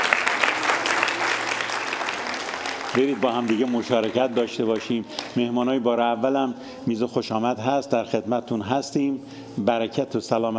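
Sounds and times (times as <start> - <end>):
church congregation applauding after a sermon: 0.0 - 5.5
speech: 2.9 - 10.5.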